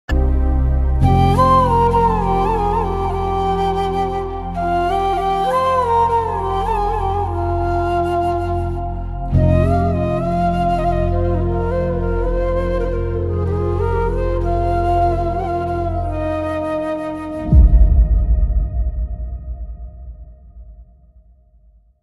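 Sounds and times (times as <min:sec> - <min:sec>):
sad background music: 0:00.1 - 0:18.6.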